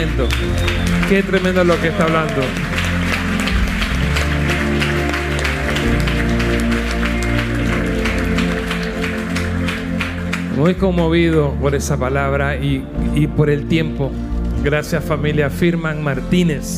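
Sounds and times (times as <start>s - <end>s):
audience applauding: 0.0s - 12.2s
speech: 0.2s - 2.8s, 10.6s - 16.7s.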